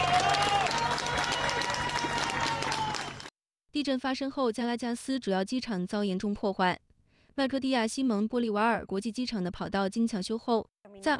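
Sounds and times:
rescuers and residents cheering: 0.0 - 3.3
speech: 3.8 - 6.8, 7.4 - 11.1.

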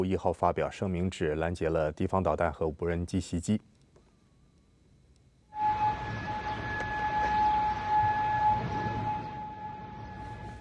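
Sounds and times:
speech: 0.0 - 3.7
air raid warning siren: 5.5 - 10.5.

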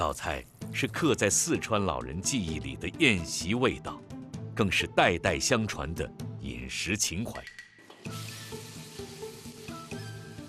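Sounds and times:
speech: 0.0 - 4.0, 4.6 - 8.2
fish head frying in a pan: 8.0 - 10.4.

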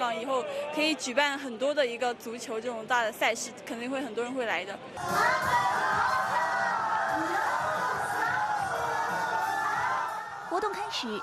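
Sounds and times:
speech: 0.2 - 6.1, 10.6 - 11.2
crowd of fans cheering: 5.0 - 11.2.

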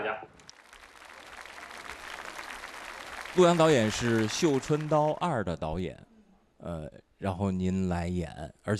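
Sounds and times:
soft applause for actress Xin Zhilei: 0.3 - 5.6
speech: 3.4 - 8.7.

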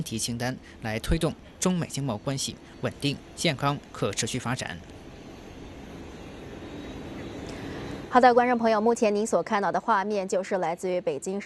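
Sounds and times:
speech: 0.0 - 5.0, 8.1 - 11.4
aircraft engine noise at Beijing Capital International Airport: 0.0 - 8.9.

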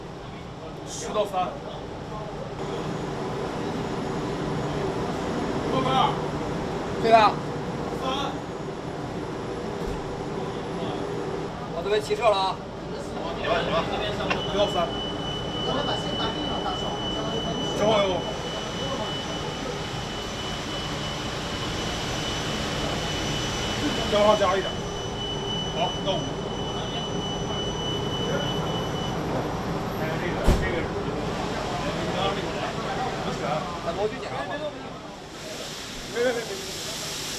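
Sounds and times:
main engine of ship No. 3 Laser Phoenix roaring in its first ignition test run: 0.0 - 37.3
speech: 1.0 - 1.8, 7.0 - 8.4, 11.8 - 15.1, 15.7 - 17.1, 17.8 - 18.4, 24.1 - 24.8, 25.8 - 26.4, 33.4 - 34.8.

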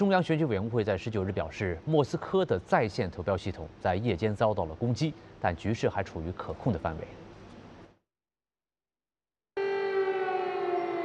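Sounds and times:
speech: 0.0 - 7.2
air raid siren wailing: 9.6 - 11.0.

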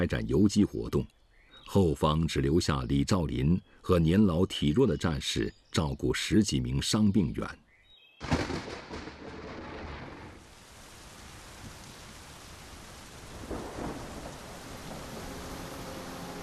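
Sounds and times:
speech: 0.0 - 7.6
thunder crack and rumble: 8.2 - 10.4, 13.3 - 15.4
heavy rain pouring: 8.2 - 16.4.

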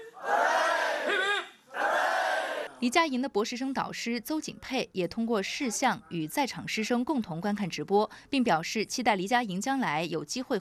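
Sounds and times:
crowd at Hong Kong university viewing of Shenzhou-23 launch cheering: 0.0 - 2.7
speech: 2.8 - 10.5.

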